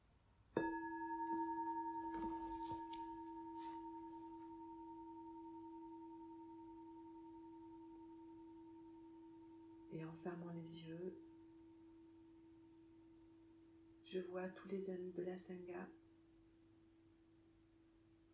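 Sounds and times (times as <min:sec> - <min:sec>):
meditation bell ringing: 0:00.6 - 0:06.7
speech: 0:10.2 - 0:11.3, 0:14.1 - 0:16.0.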